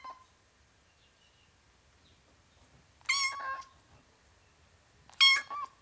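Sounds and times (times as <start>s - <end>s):
ten-week-old domestic kitten meowing: 3.1s - 3.7s, 5.1s - 5.7s.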